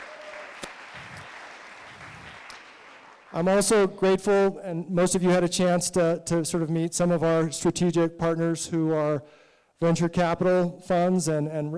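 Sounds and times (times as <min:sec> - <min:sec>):
audience applause: 0:00.0 - 0:03.5
speech: 0:03.3 - 0:11.7.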